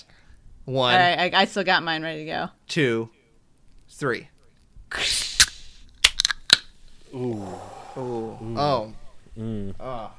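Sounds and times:
speech: 0.7s - 3.2s, 4.0s - 4.3s, 7.1s - 10.1s
fizzy drink can popping open: 5.4s - 6.7s.

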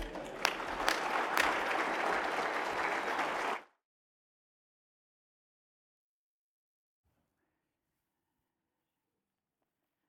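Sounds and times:
audience clapping to welcome a speaker: 0.0s - 3.8s.

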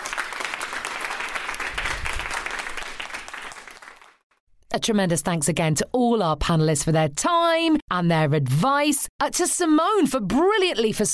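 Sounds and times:
audience applause: 0.0s - 4.2s
speech: 4.7s - 11.1s.

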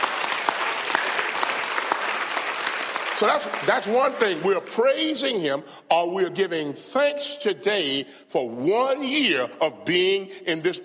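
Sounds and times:
room full of people applauding: 0.0s - 4.5s
speech: 3.2s - 10.8s.

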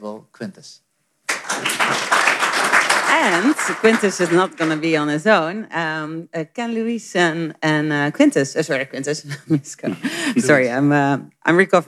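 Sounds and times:
speech: 0.0s - 0.8s, 3.1s - 11.8s
audience applause: 1.3s - 4.9s.

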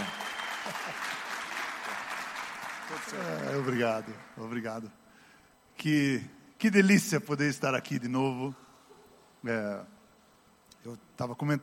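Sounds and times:
audience applause: 0.0s - 4.6s
speech: 3.0s - 5.0s, 5.8s - 8.6s, 9.4s - 10.0s, 10.8s - 11.6s.

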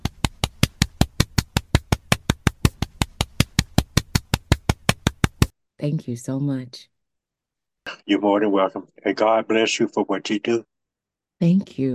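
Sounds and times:
single pair of hands clapping rapidly: 0.0s - 5.5s
speech: 5.8s - 6.9s, 8.1s - 10.7s, 11.4s - 11.9s.

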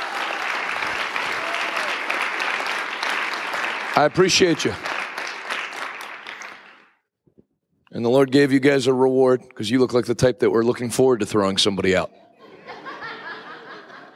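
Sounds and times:
audience hand clapping: 0.0s - 7.0s
speech: 4.0s - 4.9s, 7.9s - 12.2s
laughter: 12.2s - 14.1s.

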